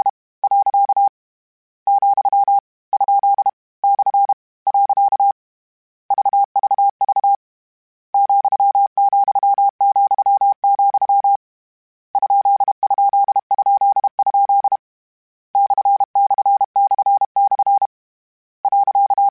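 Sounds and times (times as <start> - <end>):
Morse code CW code groups: 0.0 - 1.1, 1.9 - 5.4, 6.1 - 7.4, 8.2 - 11.4, 12.2 - 14.8, 15.6 - 17.9, 18.6 - 19.3.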